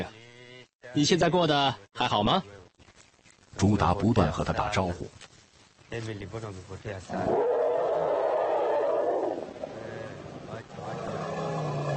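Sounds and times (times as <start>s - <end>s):
speech: 0.9s - 2.6s, 3.6s - 5.3s, 5.9s - 7.6s
elephant roar greeting call: 7.1s - 11.9s.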